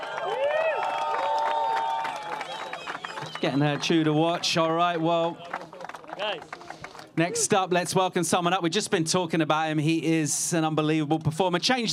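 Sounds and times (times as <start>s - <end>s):
sliding whistle-like whoops: 0.0s - 3.7s
crowd cheering and applauding the women's winner at a prize presentation: 0.0s - 7.6s
speech: 3.4s - 5.6s, 6.2s - 6.6s, 7.2s - 11.9s.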